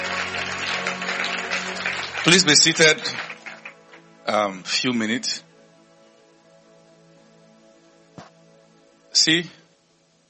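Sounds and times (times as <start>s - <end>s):
church congregation clapping: 0.0s - 4.5s
speech: 2.2s - 3.2s, 4.3s - 5.5s, 9.2s - 9.6s.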